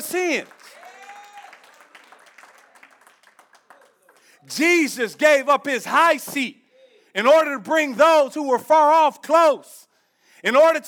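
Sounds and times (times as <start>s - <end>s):
people shouting praise and cheering: 0.0s - 1.8s
crowd applauding: 0.0s - 4.5s
speech: 0.1s - 0.7s, 4.4s - 9.8s, 10.4s - 10.8s.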